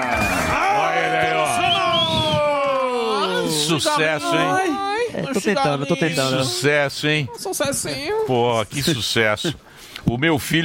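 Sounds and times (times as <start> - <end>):
high-pitched whoops and screams: 0.0 - 3.6
crowd cheering: 0.0 - 5.0
speech: 3.7 - 10.6.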